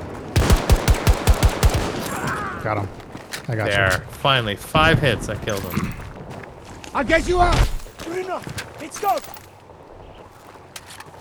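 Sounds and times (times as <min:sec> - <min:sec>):
rapid automatic gunfire in a multiplayer shooter video game: 0:00.4 - 0:02.2
speech: 0:02.6 - 0:06.1, 0:06.9 - 0:09.4.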